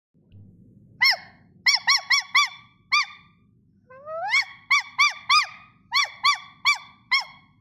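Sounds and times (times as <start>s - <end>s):
low rumble: 0.2s - 1.7s
puppy yelping: 1.0s - 3.3s, 4.0s - 7.5s.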